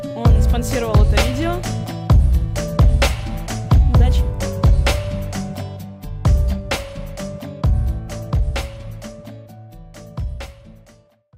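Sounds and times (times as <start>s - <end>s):
rap music: 0.3s - 9.2s.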